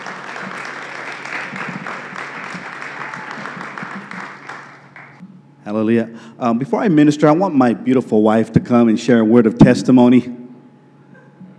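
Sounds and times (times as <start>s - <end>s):
audience applause: 0.0s - 5.2s
speech: 5.7s - 10.4s.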